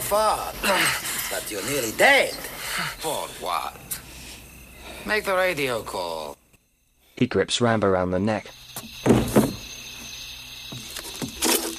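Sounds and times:
speech: 0.1 - 4.0, 5.0 - 6.4, 7.2 - 9.2
door being shut: 8.8 - 9.8.

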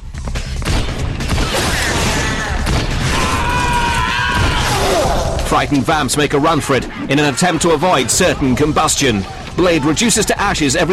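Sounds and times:
gunfire from the Blade video game: 0.6 - 5.4
speech: 5.5 - 10.9.

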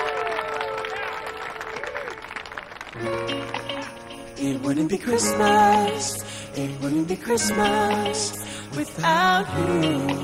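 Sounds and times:
parents applauding: 0.0 - 3.9
speech: 3.0 - 3.6, 4.4 - 10.2.

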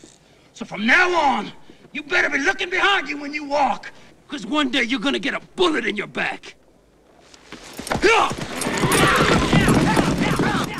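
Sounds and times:
speech: 0.6 - 6.6, 8.0 - 8.4
hooves of an outlaw gang's horses clip-clopping as they ride off: 7.2 - 10.7.

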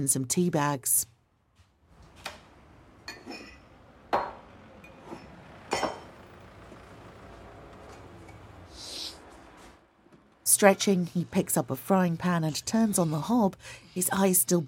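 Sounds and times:
speech: 0.0 - 1.1, 10.6 - 14.6
ceramic mugs clinking: 3.1 - 6.1.

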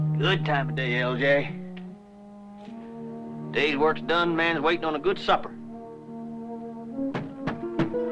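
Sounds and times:
speech: 0.2 - 1.6, 3.5 - 5.6
heavy knocks on a door: 7.1 - 8.0.

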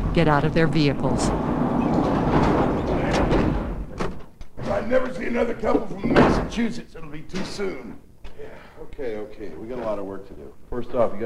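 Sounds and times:
speech: 0.2 - 2.4, 4.8 - 11.2
barn doors pulled shut: 0.9 - 5.1, 6.0 - 6.7.

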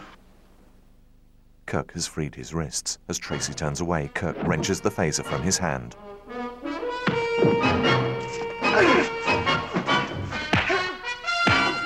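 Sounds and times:
speech: 1.7 - 6.5
sustained tonal backing: 3.2 - 11.8
blows and kicks in a fistfight between two starship captains: 10.5 - 11.7.

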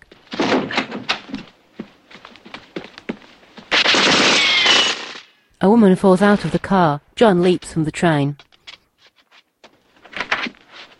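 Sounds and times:
gunshots at a lock: 0.3 - 1.2, 3.7 - 5.3
speech: 5.6 - 8.4.

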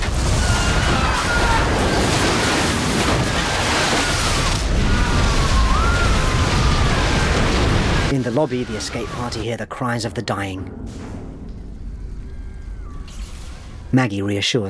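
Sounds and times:
water flooding in: 0.0 - 9.4
speech: 8.3 - 11.2, 13.9 - 14.6.

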